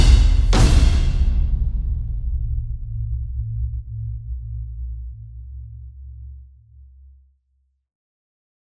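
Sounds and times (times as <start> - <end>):
drums: 0.0 - 4.3.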